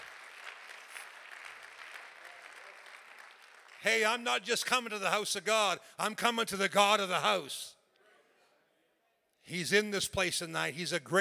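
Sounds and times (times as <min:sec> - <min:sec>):
audience clapping: 0:00.0 - 0:04.9
speech: 0:03.8 - 0:07.8, 0:09.5 - 0:11.1.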